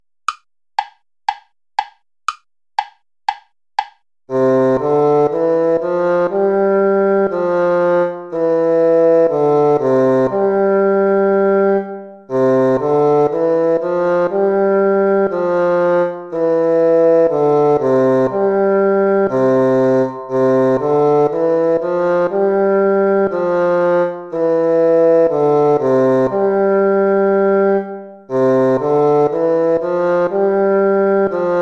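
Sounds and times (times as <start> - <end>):
gavotte music: 0.3 - 31.6.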